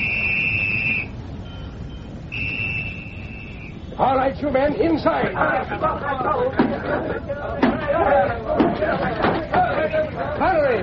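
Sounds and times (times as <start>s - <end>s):
police signal whistle: 0.0s - 4.1s
speech: 4.0s - 10.8s
laughter: 5.0s - 10.8s.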